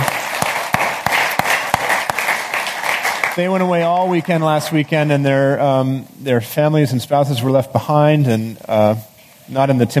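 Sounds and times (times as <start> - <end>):
audience applause: 0.0 - 5.0
speech: 3.4 - 9.9.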